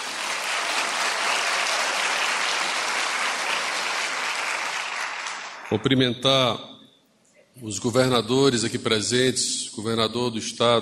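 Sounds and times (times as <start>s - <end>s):
crowd applause: 0.0s - 5.9s
speech: 5.7s - 6.7s, 7.6s - 10.7s.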